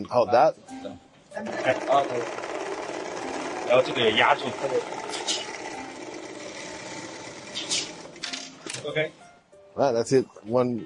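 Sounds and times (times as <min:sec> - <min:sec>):
speech: 0:00.0 - 0:02.6, 0:03.7 - 0:05.4, 0:08.8 - 0:09.2, 0:09.8 - 0:10.8
industrial sewing machine whirring on a factory assembly line: 0:01.4 - 0:08.9.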